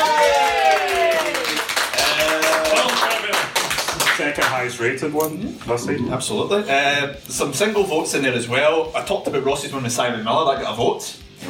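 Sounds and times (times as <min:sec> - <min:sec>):
applause: 0:00.0 - 0:04.8
speech: 0:04.2 - 0:11.4.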